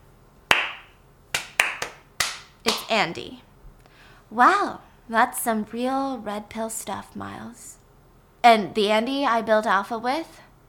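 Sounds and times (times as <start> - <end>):
slow hand clapping: 0.5 - 2.9
speech: 2.9 - 3.5, 4.3 - 7.8, 8.4 - 10.4.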